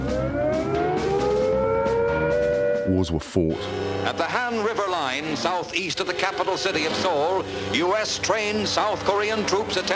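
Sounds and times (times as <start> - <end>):
civil defense siren wailing as nuclear attack warning: 0.0 - 2.9
speech: 2.9 - 9.9.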